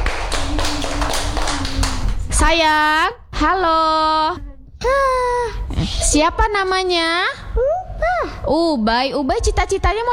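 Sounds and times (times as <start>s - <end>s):
children in a class clapping: 0.0s - 3.1s
low hum: 0.0s - 10.1s
speech: 2.5s - 10.1s.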